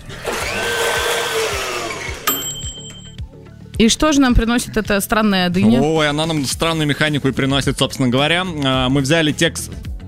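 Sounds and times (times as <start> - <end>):
smoothie blender running: 0.0 - 2.3
speech: 3.8 - 9.9.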